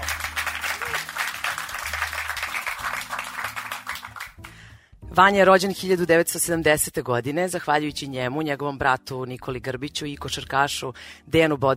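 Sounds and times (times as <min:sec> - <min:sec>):
audience clapping welcoming a guest on stage: 0:00.0 - 0:04.6
speech: 0:05.2 - 0:11.7.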